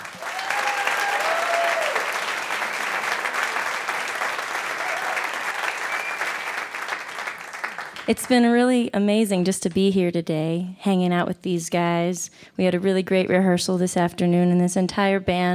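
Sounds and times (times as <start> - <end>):
audience applause welcoming a performer: 0.0 - 8.1
speech: 8.1 - 15.5.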